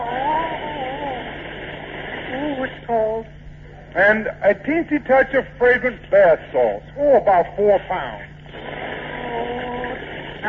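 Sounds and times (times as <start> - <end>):
bucket of liquid poured over someone: 0.0 - 2.9, 8.5 - 10.4
speech: 2.9 - 8.7.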